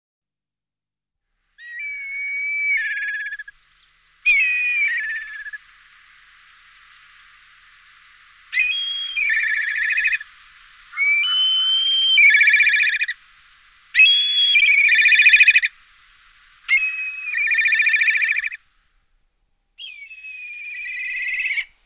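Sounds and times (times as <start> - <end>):
black kite whinnying call: 4.2 - 5.7, 8.5 - 13.2, 14.0 - 15.8, 16.7 - 18.6, 19.8 - 21.8.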